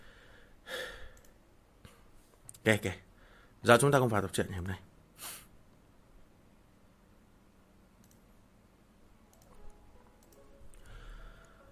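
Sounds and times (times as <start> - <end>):
person breathing in and out: 0.0 - 1.3, 3.2 - 3.6, 10.7 - 11.7
speech: 2.6 - 3.0, 3.6 - 5.3.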